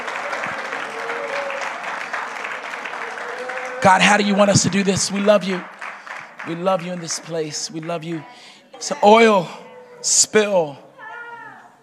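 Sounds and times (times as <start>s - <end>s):
audience clapping hands: 0.0s - 8.3s
speech: 3.8s - 5.8s, 6.4s - 10.9s.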